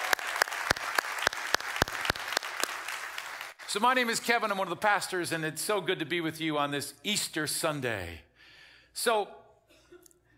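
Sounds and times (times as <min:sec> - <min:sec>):
Easter Sunday church congregation clapping: 0:00.0 - 0:04.4
speech: 0:03.7 - 0:08.3, 0:09.0 - 0:09.4.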